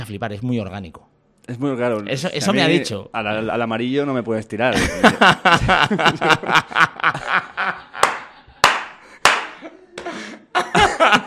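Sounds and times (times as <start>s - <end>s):
speech: 0.1s - 7.2s
people laughing: 4.7s - 11.2s
sharp loud hand claps: 8.0s - 10.1s.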